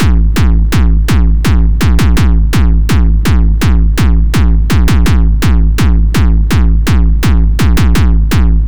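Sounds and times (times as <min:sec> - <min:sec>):
Microtonic drum synth: 0:00.0 - 0:08.6.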